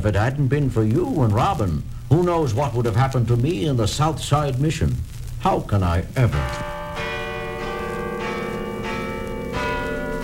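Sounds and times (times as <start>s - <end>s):
speech: 0.0s - 6.7s
church bells ringing midnight: 6.3s - 10.2s.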